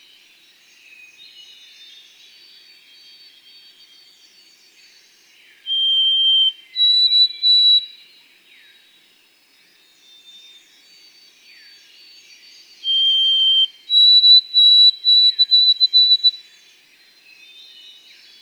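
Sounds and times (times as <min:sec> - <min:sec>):
white-throated sparrow whistled song: 0:05.7 - 0:07.8, 0:12.9 - 0:16.3.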